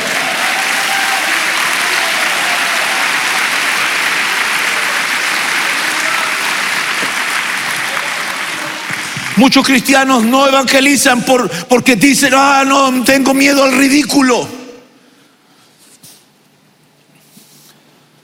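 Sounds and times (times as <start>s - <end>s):
audience clapping hands: 0.0s - 10.3s
speech: 9.4s - 14.6s.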